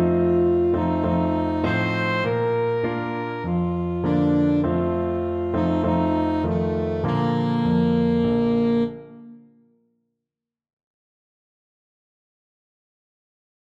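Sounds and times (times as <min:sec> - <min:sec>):
saxophone: 0:00.0 - 0:09.8.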